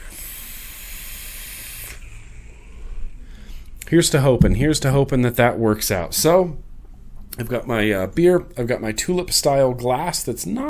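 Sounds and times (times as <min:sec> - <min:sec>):
vape atomizer hissing on 92-watt mod: 0:00.0 - 0:02.8
speech: 0:03.9 - 0:06.6, 0:07.4 - 0:10.6.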